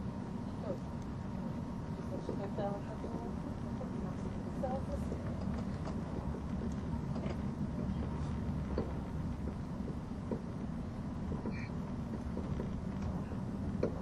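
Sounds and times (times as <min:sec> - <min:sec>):
ETR610 tilting EuroCity train running through the Gotthard Base Tunnel: 0:00.0 - 0:14.0
faint voices: 0:00.3 - 0:09.1.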